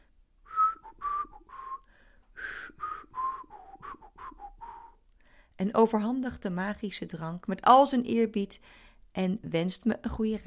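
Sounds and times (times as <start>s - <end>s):
shaman rhythmically blowing whistled song over tea: 0.4s - 5.0s
speech: 5.6s - 10.4s.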